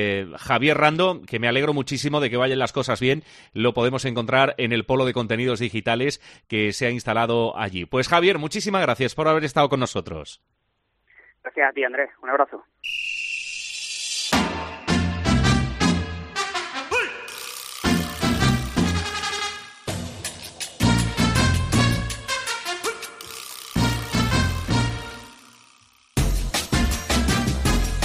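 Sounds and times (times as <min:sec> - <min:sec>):
speech: 0:00.0 - 0:10.6, 0:11.4 - 0:13.2
upbeat radio jingle introducing a technology and privacy lawyer segment: 0:14.4 - 0:25.5, 0:26.2 - 0:28.0.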